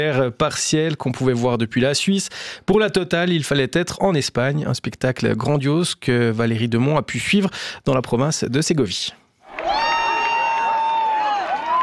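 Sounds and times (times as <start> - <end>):
speech: 0.0 - 9.2
crowd cheering at a total solar eclipse in Segovia province, Spain: 9.4 - 11.8
loud high cry: 9.5 - 11.8.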